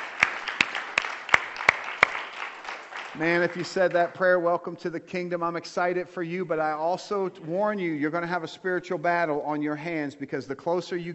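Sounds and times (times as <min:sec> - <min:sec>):
audience hand clapping: 0:00.0 - 0:04.4
speech: 0:03.2 - 0:11.1.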